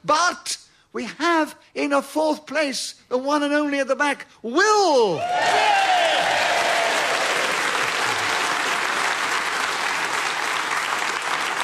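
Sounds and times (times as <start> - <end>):
speech: 0.0 - 6.4
studio audience applause: 5.3 - 11.6.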